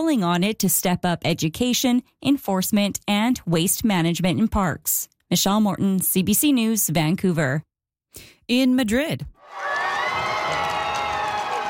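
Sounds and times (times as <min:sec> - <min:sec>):
speech: 0:00.0 - 0:09.8
huge crowds cheering Pope Leo at the royal palace in Madrid: 0:09.4 - 0:11.6
shouts and whoops: 0:09.4 - 0:11.6.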